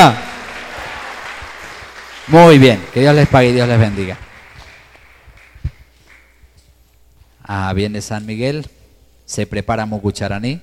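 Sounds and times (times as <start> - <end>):
speech: 0.0 - 0.3, 2.3 - 4.2, 7.5 - 10.6
audience applause: 0.0 - 6.3.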